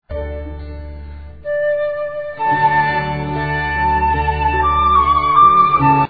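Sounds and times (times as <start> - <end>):
flute: 0.1 - 6.0.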